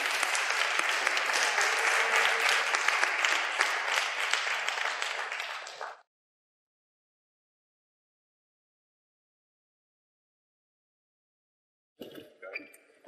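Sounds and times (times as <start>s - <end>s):
audience applause: 0.0s - 6.1s.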